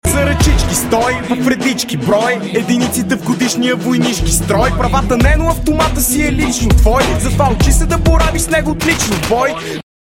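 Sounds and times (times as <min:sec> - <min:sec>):
win music: 0:00.0 - 0:09.8.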